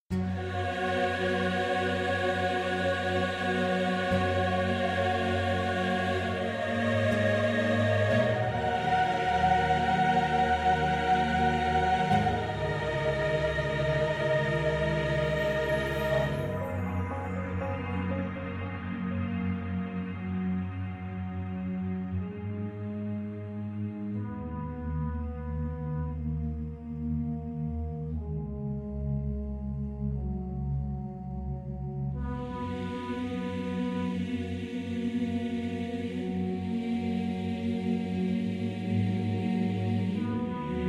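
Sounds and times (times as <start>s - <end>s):
church music: 0.1s - 40.8s.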